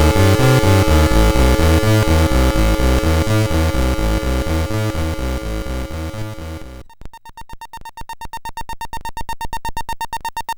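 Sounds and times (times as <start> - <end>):
infernal 25Hz tone from a sound chip: 0.0 - 6.8.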